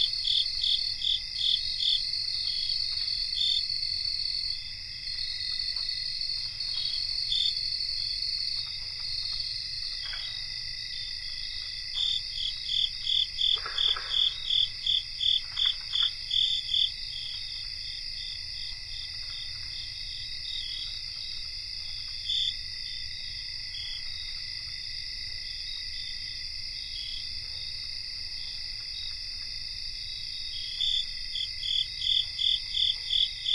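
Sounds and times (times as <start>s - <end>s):
North American cricket chorus: 0.0s - 33.5s.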